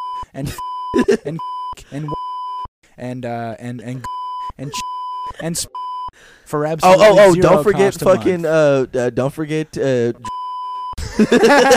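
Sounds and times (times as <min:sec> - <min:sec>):
censor bleep sound effect: 0:00.0 - 0:02.7, 0:04.0 - 0:06.1
speech: 0:00.3 - 0:02.2, 0:03.0 - 0:10.3, 0:11.2 - 0:11.7
laughter: 0:00.4 - 0:02.2, 0:07.0 - 0:08.4, 0:11.0 - 0:11.7.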